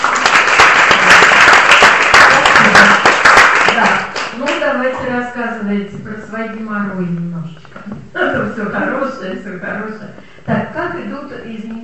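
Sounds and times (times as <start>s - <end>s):
audience applause: 0.0s - 4.4s
speech: 4.8s - 11.8s.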